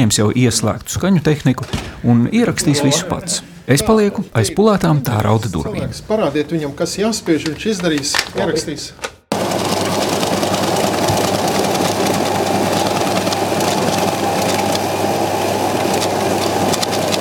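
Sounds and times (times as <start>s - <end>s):
speech: 0.0s - 9.8s
banknote sorting machine running: 9.3s - 17.1s.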